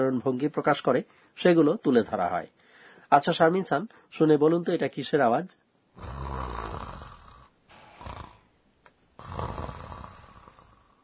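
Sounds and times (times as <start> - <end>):
speech: 0.0 - 6.3
snoring from someone in deep sleep: 6.0 - 8.5, 9.2 - 11.0.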